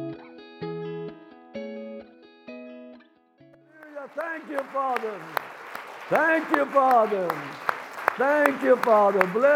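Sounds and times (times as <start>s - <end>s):
audience clapping: 3.7s - 9.5s
speech: 6.1s - 9.5s.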